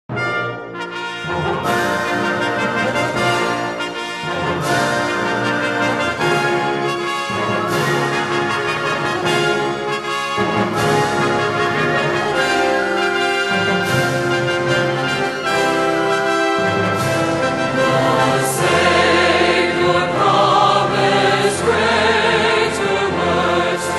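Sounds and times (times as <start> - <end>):
chorale with orchestra: 0.1 - 23.9.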